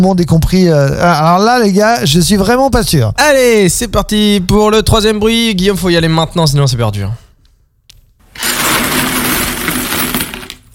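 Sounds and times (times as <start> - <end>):
speech: 0.0 - 7.2
large pile of coins falling from a drawer: 8.3 - 10.7.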